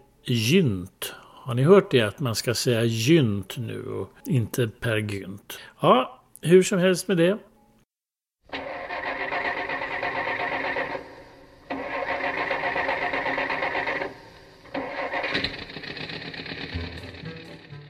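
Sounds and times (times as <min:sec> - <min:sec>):
speech: 0:00.2 - 0:07.5
old rickety car engine: 0:08.5 - 0:17.8.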